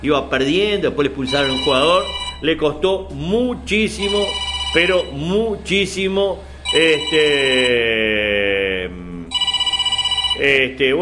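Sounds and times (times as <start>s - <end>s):
speech: 0.0s - 9.0s, 10.4s - 11.0s
telephone ringing: 1.2s - 2.6s, 3.9s - 5.2s, 6.6s - 7.9s, 9.3s - 10.8s.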